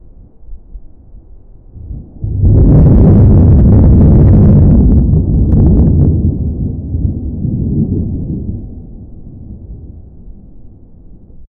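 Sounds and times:
deep rumbling thunderstorm rolling across the sky: 1.7s - 11.5s.

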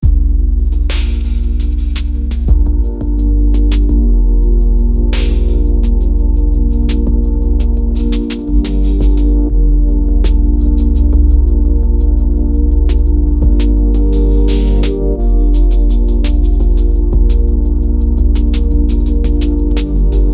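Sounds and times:
deep layered chillhop beat: 0.0s - 20.3s.

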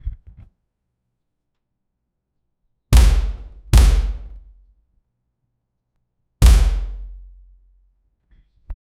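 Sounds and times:
abrupt door sound: 3.0s - 4.6s, 6.4s - 7.4s.

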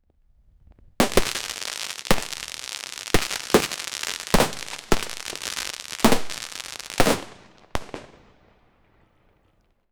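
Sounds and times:
fireworks: 0.6s - 9.8s
confetti burst: 1.0s - 7.4s.

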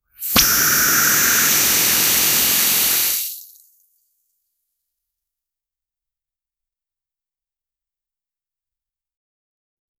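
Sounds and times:
air suction: 0.2s - 3.5s
realistic iPhone water sound: 0.2s - 3.6s.

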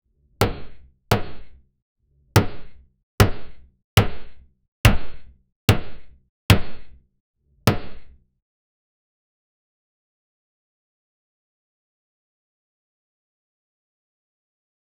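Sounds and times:
violent slapstick sound: 2.4s - 7.0s, 7.7s - 8.2s.

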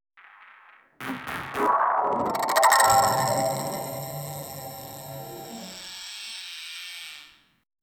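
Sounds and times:
energy ball charging up: 0.2s - 7.4s.

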